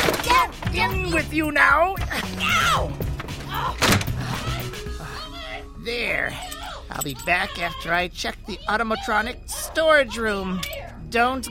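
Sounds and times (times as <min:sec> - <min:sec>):
speech: 0:00.7 - 0:03.0, 0:03.6 - 0:04.9, 0:05.8 - 0:11.4
closet door slamming shut: 0:03.8 - 0:04.2.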